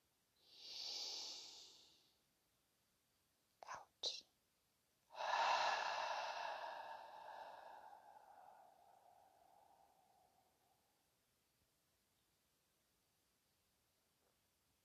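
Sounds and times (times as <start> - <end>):
deep breathing: 0.4 - 2.1, 5.1 - 10.9.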